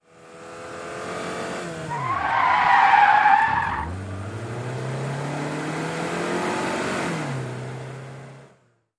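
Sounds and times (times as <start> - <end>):
sedan engine revving: 0.2 - 8.4
sedan tyres skidding: 1.4 - 7.4.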